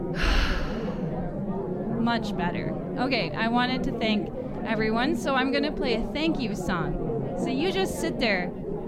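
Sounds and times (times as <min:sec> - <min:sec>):
person taking a deep breath: 0:00.2 - 0:01.2
speech: 0:02.1 - 0:08.6.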